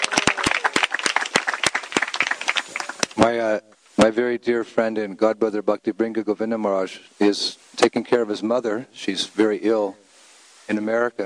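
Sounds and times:
applause: 0.0s - 3.2s
speech: 3.2s - 10.0s, 10.7s - 11.2s.

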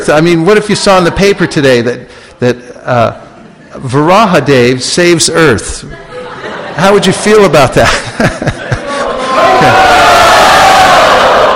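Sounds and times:
speech: 0.0s - 8.7s
laughter: 5.8s - 10.4s
crowd cheering: 8.6s - 11.5s.

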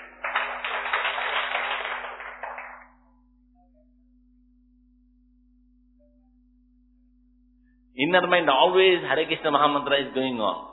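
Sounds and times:
audience clapping: 0.0s - 3.0s
speech: 8.0s - 10.7s.

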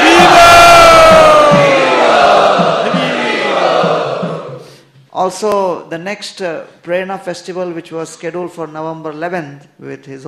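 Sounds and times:
congregation at a spiritual gathering chanting loudly in welcome: 0.0s - 4.6s
speech: 5.2s - 10.2s.

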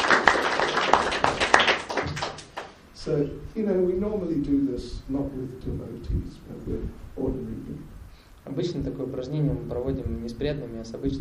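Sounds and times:
audience applause: 0.0s - 2.8s
speech: 3.1s - 11.1s.

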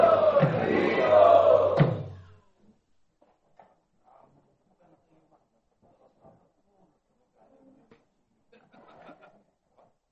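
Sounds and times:
crowd chanting at an ISKCON morning class: 0.0s - 2.4s
laughter: 8.5s - 9.6s.

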